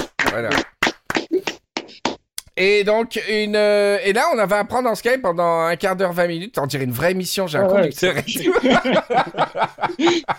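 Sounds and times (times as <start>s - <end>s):
applause for ambulance workers: 0.0s - 1.6s
speech: 0.3s - 0.7s, 2.6s - 10.3s
laughter: 8.0s - 10.3s.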